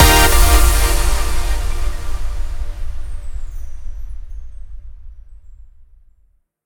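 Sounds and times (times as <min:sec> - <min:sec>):
big win ending jingle: 0:00.0 - 0:03.2.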